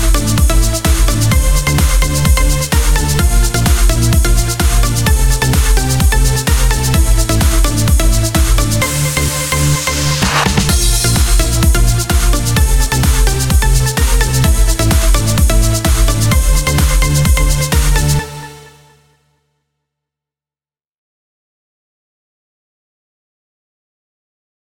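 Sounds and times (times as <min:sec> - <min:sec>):
simple house music: 0:00.0 - 0:18.8.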